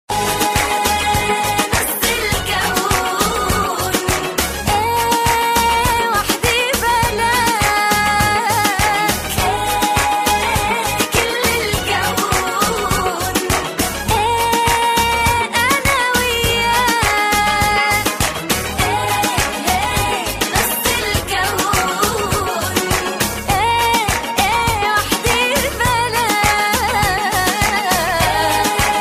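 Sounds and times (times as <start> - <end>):
Arabic music: 0.1 - 29.0.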